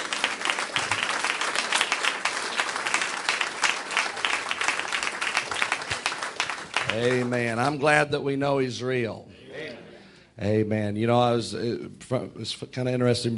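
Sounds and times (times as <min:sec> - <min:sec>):
church congregation clapping hands in praise during a worship service: 0:00.0 - 0:08.0
speech: 0:06.9 - 0:09.3, 0:10.4 - 0:13.3.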